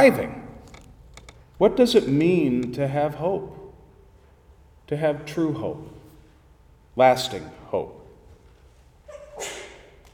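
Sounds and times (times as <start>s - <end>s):
speech: 0.0s - 0.4s, 1.6s - 3.6s, 4.9s - 6.0s, 7.0s - 8.0s, 9.4s - 9.6s
sneeze: 9.1s - 10.0s.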